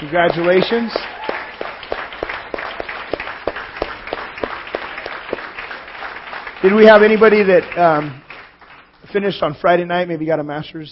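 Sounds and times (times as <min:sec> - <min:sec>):
speech: 0:00.0 - 0:01.2, 0:06.6 - 0:08.2, 0:09.1 - 0:10.9
audience cheering: 0:00.0 - 0:07.1
audience applause: 0:00.0 - 0:08.9.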